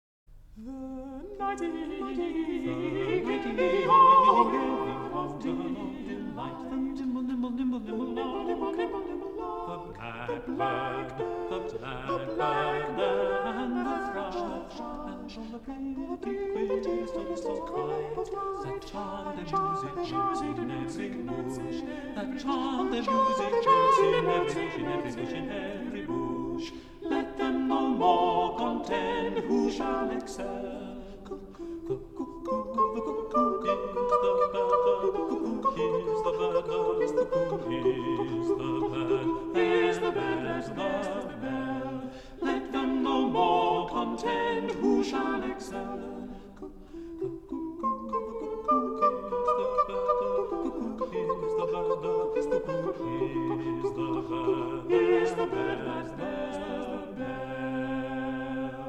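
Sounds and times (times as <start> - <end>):
English madrigal singing: 0.6 - 58.8.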